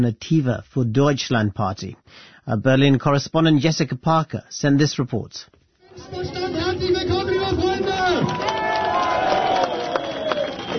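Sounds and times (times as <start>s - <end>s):
speech: 0.0s - 6.4s
crowd cheering at an Alternative für Deutschland rally in Querfurt: 5.8s - 10.7s.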